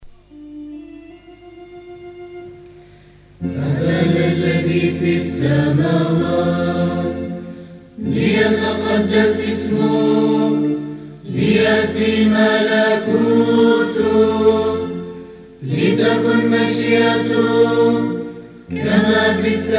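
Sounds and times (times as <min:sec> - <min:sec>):
hymn to a Russian melody: 0:03.3 - 0:19.7.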